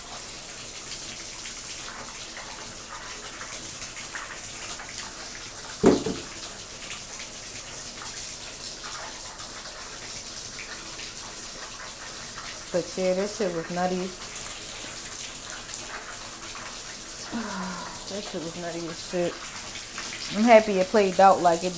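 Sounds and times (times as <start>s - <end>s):
water running from a tap while hands are washed: 0.0s - 21.7s
brief knock: 5.8s - 6.3s
speech: 12.8s - 14.3s, 18.2s - 19.6s, 20.3s - 21.7s.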